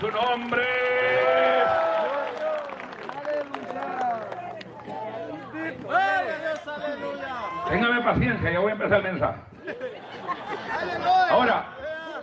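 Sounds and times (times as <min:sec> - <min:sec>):
speech: 0:00.0 - 0:00.8, 0:07.7 - 0:09.6, 0:10.8 - 0:11.7
audience applauding: 0:00.0 - 0:04.8
crowd shouting and cheering: 0:00.0 - 0:08.5, 0:10.0 - 0:12.2
laughter: 0:09.5 - 0:12.2.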